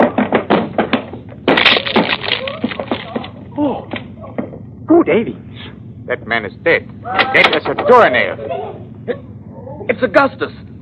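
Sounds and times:
heavy thumps on a locked cabin door aboard a ship: 0.0 - 2.1
locked cabin door breaking with a splintering crash and rattling wood: 0.0 - 3.4
speech: 5.1 - 5.5, 6.1 - 9.3, 9.9 - 10.7.

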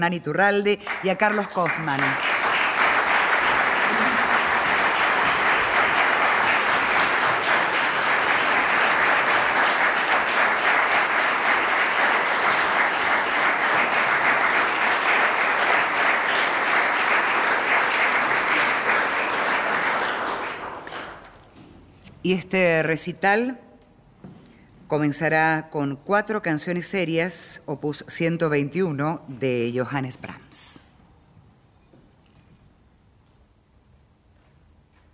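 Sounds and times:
speech: 0.0 - 2.4, 22.3 - 23.6, 24.9 - 30.8
audience applause in a hall: 0.8 - 21.4.

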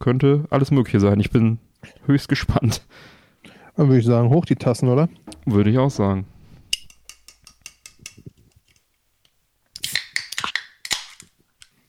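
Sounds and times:
speech: 0.0 - 3.2, 3.8 - 6.4
drink can opening: 9.8 - 11.7.

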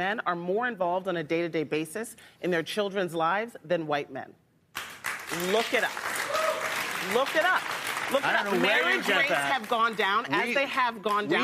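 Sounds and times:
speech: 0.0 - 4.4, 5.3 - 6.2, 7.0 - 11.4
crowd applauding: 4.8 - 10.3.

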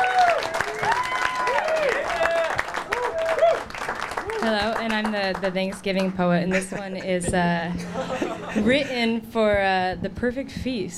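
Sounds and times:
people whooping and calling out: 0.0 - 4.7
crowd applause: 0.0 - 6.1
speech: 4.4 - 10.9
laughter: 6.4 - 9.2.

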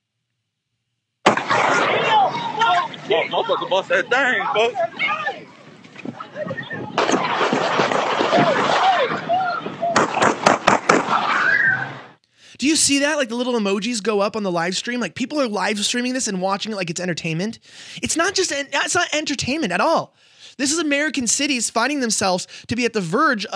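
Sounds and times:
gunshots: 1.2 - 2.8, 7.0 - 9.3, 9.9 - 11.6
laughter: 1.5 - 12.0
speech: 3.2 - 5.4, 12.6 - 23.5.

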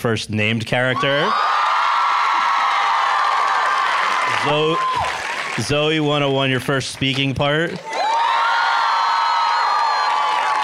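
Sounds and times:
speech: 0.0 - 1.6, 4.4 - 7.9
live audience cheering with high-pitched shrieks and whoops: 0.9 - 5.6, 7.8 - 10.6
live audience clapping: 1.4 - 10.6.

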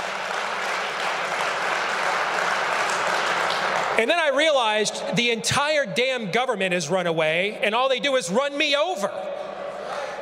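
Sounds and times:
audience applause: 0.0 - 4.0, 9.7 - 10.2
speech: 4.0 - 9.4.

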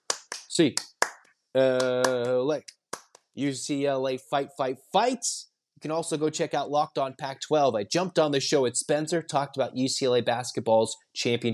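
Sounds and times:
hand claps: 0.0 - 3.3
speech: 0.6 - 0.9, 1.5 - 2.8, 3.4 - 11.5.

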